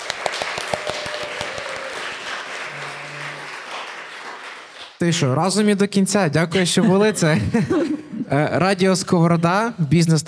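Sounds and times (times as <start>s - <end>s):
audience applause: 0.0s - 5.0s
speech: 5.0s - 10.2s
laughter: 6.6s - 8.5s.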